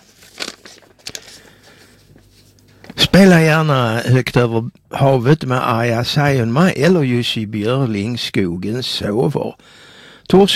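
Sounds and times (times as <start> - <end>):
paper rustling as letters are drawn out of an envelope: 0.0 - 3.0
speech: 3.2 - 10.5.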